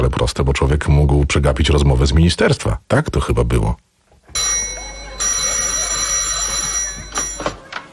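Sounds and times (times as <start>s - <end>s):
speech: 0.0s - 3.8s
old telephone bell ringing: 4.4s - 7.8s.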